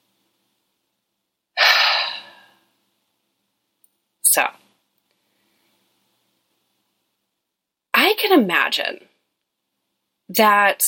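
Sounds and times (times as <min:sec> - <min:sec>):
deep breath: 0:01.6 - 0:02.8
speech: 0:04.4 - 0:04.6, 0:08.3 - 0:09.1, 0:10.3 - 0:10.8.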